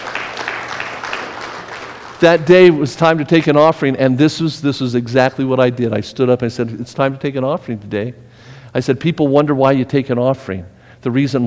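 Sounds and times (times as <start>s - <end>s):
audience applause: 0.0s - 2.4s
speech: 2.2s - 11.4s.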